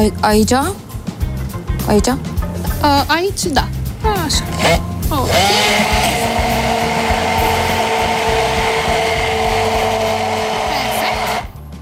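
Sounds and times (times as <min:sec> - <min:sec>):
speech: 0:00.0 - 0:00.8, 0:01.8 - 0:06.8
kitchen blender mixing ingredients for a Romanian cake: 0:04.5 - 0:11.6.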